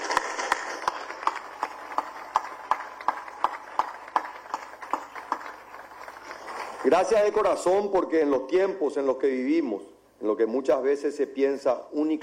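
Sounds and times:
audience applause in a quick rhythm: 0.0s - 7.6s
speech: 6.8s - 12.2s.

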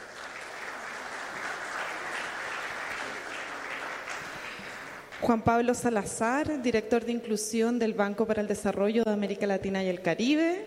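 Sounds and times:
audience applause: 0.0s - 5.1s
speech: 5.2s - 10.6s.

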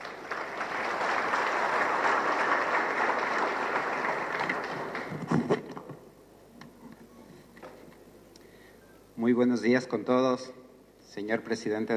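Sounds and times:
audience applause welcoming a speaker: 0.0s - 5.6s
speech: 9.3s - 10.6s, 11.2s - 11.9s.

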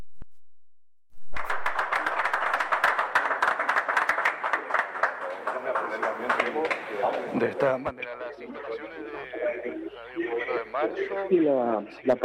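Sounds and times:
audience applause: 1.4s - 7.4s
speech: 7.3s - 12.2s.

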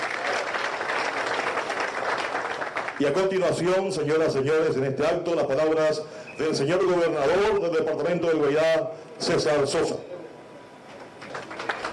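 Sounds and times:
applause at an official ceremony in Guairá department: 0.0s - 3.6s, 10.9s - 11.9s
speech: 3.0s - 10.0s.

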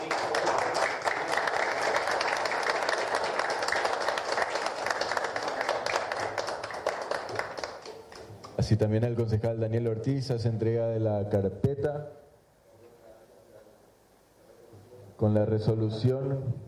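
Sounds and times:
crowd applauding loudly: 0.0s - 8.3s
speech: 8.7s - 12.2s, 15.2s - 16.6s.

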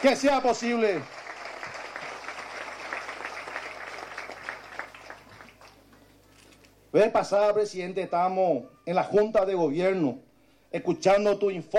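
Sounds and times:
speech: 0.0s - 1.2s, 6.9s - 11.7s
audience clapping: 0.0s - 6.2s.

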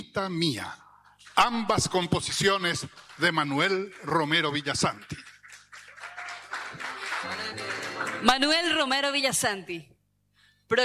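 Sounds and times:
speech: 0.2s - 5.3s, 7.2s - 9.9s
audience applause: 3.0s - 8.6s.

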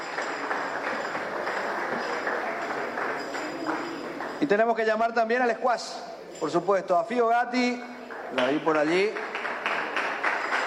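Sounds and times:
audience applause: 0.0s - 4.4s, 8.1s - 10.6s
speech: 4.4s - 9.3s.

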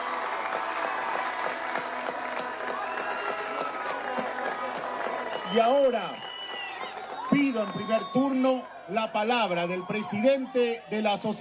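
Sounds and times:
audience applause: 0.0s - 8.5s
crowd noise: 0.0s - 11.3s
speech: 5.5s - 6.2s, 7.5s - 11.3s.

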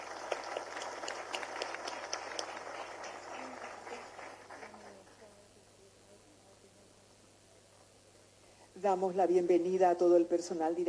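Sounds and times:
audience applause: 0.0s - 5.2s
speech: 8.8s - 10.8s.

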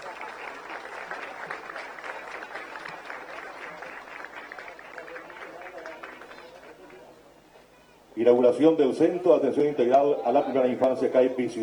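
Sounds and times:
audience applause: 0.0s - 7.1s
speech: 8.2s - 11.6s.

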